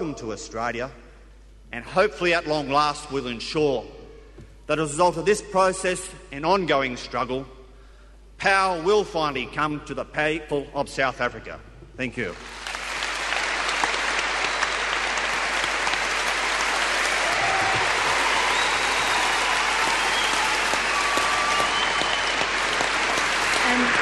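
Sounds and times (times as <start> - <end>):
speech: 0.1 - 1.1, 1.7 - 4.0, 4.7 - 7.6, 8.4 - 12.6
crowd cheering for Nelson Mandela: 12.4 - 24.0.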